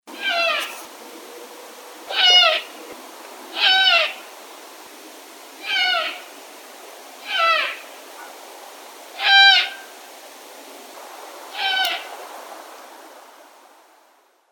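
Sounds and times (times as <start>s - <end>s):
owl: 0.2s - 0.9s, 2.1s - 2.7s, 3.5s - 4.2s, 5.6s - 6.2s, 7.2s - 7.8s, 11.5s - 12.1s.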